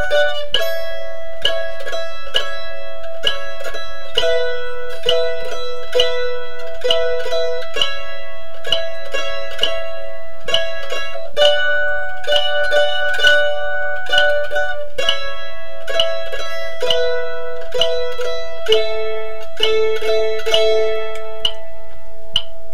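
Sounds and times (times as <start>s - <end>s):
mandolin playing an exercise: 0.0s - 22.7s.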